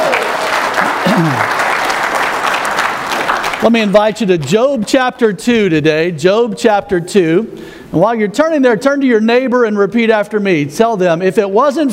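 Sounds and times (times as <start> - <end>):
audience applause: 0.0 - 4.0
person whooping: 1.0 - 1.6
speech: 1.2 - 1.6, 3.6 - 11.9.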